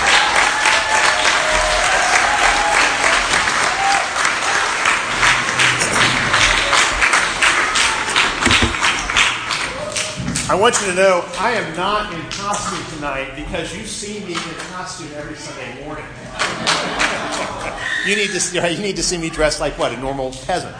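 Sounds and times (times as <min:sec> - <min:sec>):
audience applause: 0:00.0 - 0:10.8, 0:16.3 - 0:18.7
speech: 0:10.6 - 0:20.7
laughter: 0:16.1 - 0:19.6.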